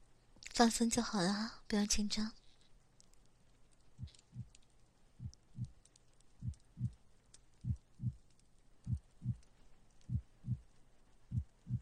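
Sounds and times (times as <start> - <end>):
faint hiss: 0.0 - 11.8
speech: 0.6 - 2.4
slow steady heartbeat: 4.0 - 4.6, 5.2 - 5.8, 6.4 - 7.0, 7.6 - 10.7, 11.3 - 11.8.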